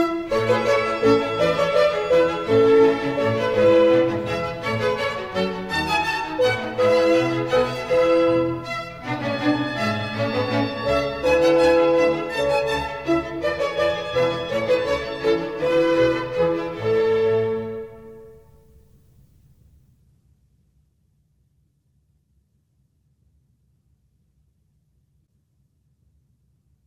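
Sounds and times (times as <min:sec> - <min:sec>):
minuet in A major: 0:00.0 - 0:19.2.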